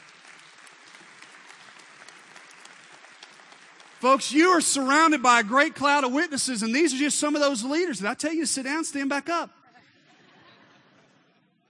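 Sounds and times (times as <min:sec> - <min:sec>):
audience applause for team coaches: 0:00.0 - 0:04.5
speech: 0:04.0 - 0:09.6.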